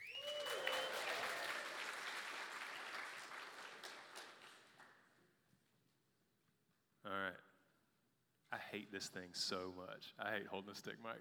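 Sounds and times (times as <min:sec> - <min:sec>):
whistle-like cheer: 0:00.0 - 0:01.7
audience applause: 0:00.0 - 0:04.9
speech: 0:08.7 - 0:11.1.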